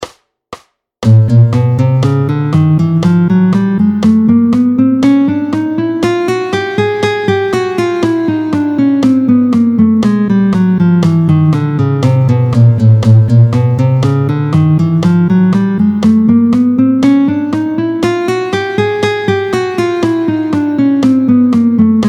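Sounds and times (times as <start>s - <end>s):
fast arpeggios at tempo 120: 1.0s - 22.0s.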